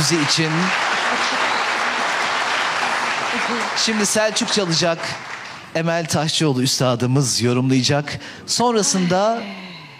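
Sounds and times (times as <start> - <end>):
speech: 0.0 - 1.3, 3.4 - 9.8
audience applause at a Turkish folk music event: 0.0 - 6.0.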